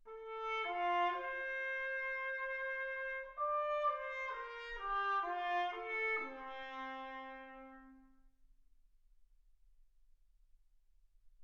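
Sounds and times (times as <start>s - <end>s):
trumpet: 0.1s - 8.3s.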